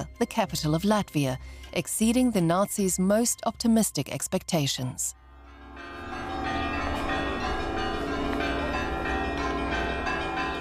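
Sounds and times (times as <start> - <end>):
speech: 0.0 - 5.2
church bells ringing: 5.2 - 10.5.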